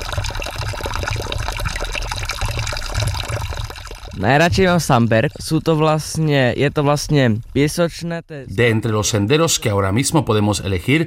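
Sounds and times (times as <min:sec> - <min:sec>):
water flowing from a public fountain: 0:00.0 - 0:05.7
speech: 0:04.2 - 0:11.0.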